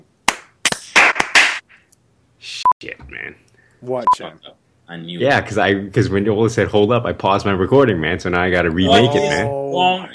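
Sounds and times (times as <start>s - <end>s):
group clapping: 0.3s - 1.6s
speech: 2.4s - 10.1s.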